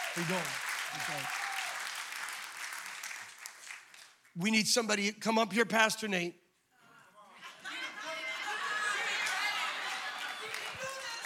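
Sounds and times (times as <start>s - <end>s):
applause welcoming a preacher: 0.0s - 4.2s, 8.2s - 11.2s
speech: 0.2s - 1.4s, 4.4s - 6.4s
laughter: 7.3s - 11.2s.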